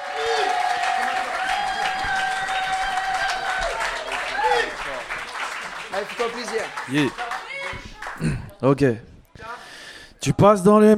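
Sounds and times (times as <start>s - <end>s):
cheering and whoops: 0.0s - 5.0s
audience applause for poet: 0.0s - 8.6s
speech: 6.0s - 7.3s, 8.2s - 9.1s, 10.2s - 10.9s.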